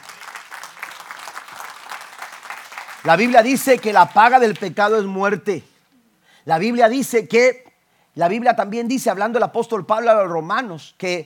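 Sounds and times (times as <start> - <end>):
audience applause: 0.0 - 4.8
speech: 3.0 - 5.7, 6.4 - 7.6, 8.2 - 11.2.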